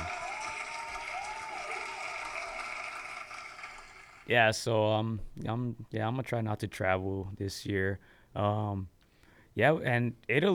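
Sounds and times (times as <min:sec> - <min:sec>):
crowd applause: 0:00.0 - 0:04.3
speech: 0:04.3 - 0:09.0, 0:09.6 - 0:10.5.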